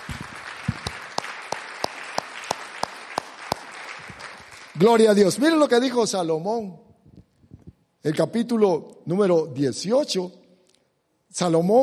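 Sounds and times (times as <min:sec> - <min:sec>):
audience applauding: 0:00.0 - 0:05.2
sharp regular louder claps: 0:00.0 - 0:05.2
speech: 0:04.8 - 0:06.8, 0:08.0 - 0:10.4, 0:11.3 - 0:11.8.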